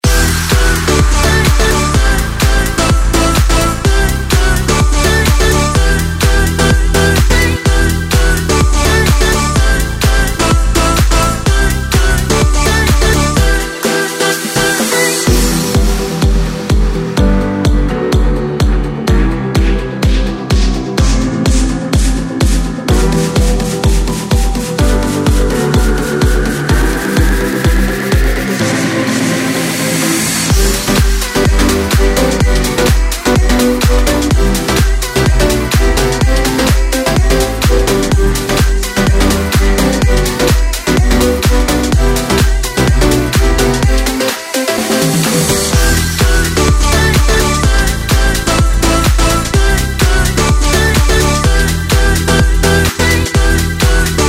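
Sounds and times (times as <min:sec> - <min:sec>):
serial beats: 0:00.0 - 0:29.7, 0:30.5 - 0:54.2.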